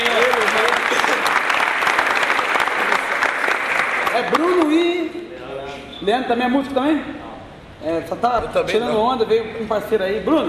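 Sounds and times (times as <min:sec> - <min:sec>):
audience applause: 0:00.0 - 0:04.8
speech: 0:06.0 - 0:10.4.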